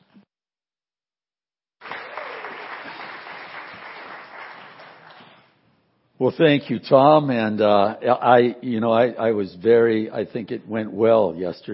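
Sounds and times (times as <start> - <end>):
church congregation clapping to welcome the pastor: 1.8 - 5.6
speech: 6.2 - 11.7.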